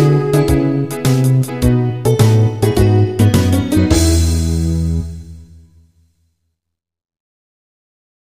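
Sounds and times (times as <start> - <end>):
blues music: 0.0 - 5.9.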